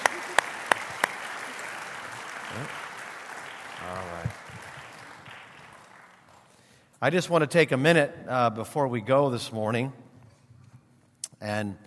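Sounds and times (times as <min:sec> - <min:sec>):
audience applause: 0:00.0 - 0:06.6
speech: 0:02.5 - 0:02.8, 0:07.0 - 0:10.0, 0:11.4 - 0:11.8.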